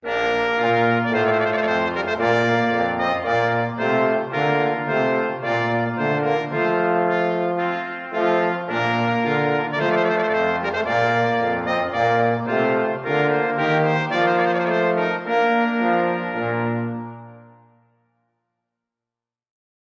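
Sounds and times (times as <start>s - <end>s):
trumpet piece: 0.0s - 18.1s.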